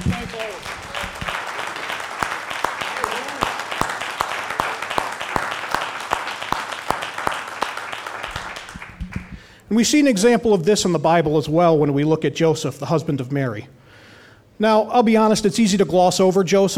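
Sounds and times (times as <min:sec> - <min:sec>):
audience applause: 0:00.0 - 0:09.4
speech: 0:09.7 - 0:13.8, 0:14.6 - 0:16.7.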